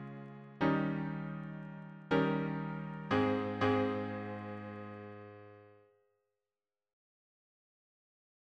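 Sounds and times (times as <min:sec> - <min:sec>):
piano harmony: 0:00.0 - 0:05.8.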